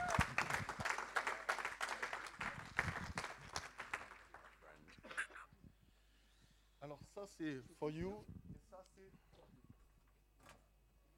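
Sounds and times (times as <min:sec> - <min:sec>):
audience applause: 0:00.0 - 0:04.7
speech: 0:07.2 - 0:08.4.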